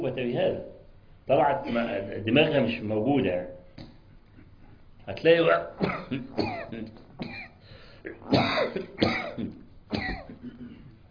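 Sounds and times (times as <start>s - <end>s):
speech: 0.2s - 3.9s, 5.0s - 7.4s, 8.0s - 10.6s
harsh breathy coughing: 1.6s - 2.0s, 5.5s - 11.0s
throat clearing: 5.5s - 11.0s.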